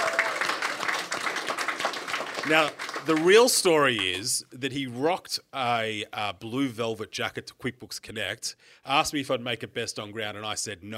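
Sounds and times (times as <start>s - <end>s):
audience round of applause: 0.0s - 4.2s
speech: 2.4s - 10.9s.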